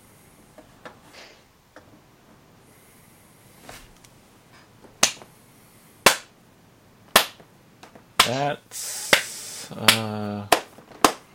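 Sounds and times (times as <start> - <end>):
lone slow hand claps from one person: 5.0 - 5.2, 9.1 - 11.3
speech: 9.7 - 10.5.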